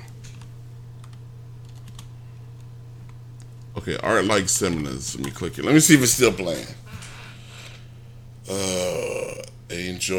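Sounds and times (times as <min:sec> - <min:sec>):
steady low electrical hum: 0:00.0 - 0:10.1
website address typed on a computer keyboard: 0:00.2 - 0:02.1
speech: 0:03.8 - 0:07.1, 0:10.0 - 0:10.1.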